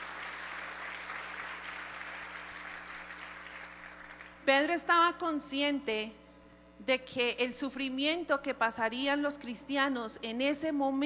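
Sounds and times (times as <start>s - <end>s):
audience applause: 0.0s - 4.4s
low steady hum: 0.0s - 11.0s
speech: 4.5s - 6.2s, 6.8s - 11.0s.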